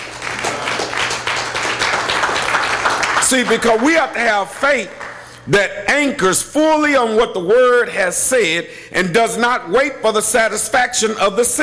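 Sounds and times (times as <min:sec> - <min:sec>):
audience clapping hands: 0:00.0 - 0:05.4
speech: 0:03.3 - 0:11.6.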